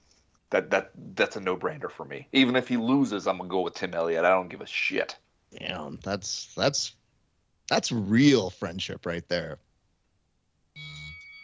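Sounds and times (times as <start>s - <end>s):
speech: 0.5s - 7.0s, 7.7s - 9.6s
buzzer: 10.8s - 11.4s.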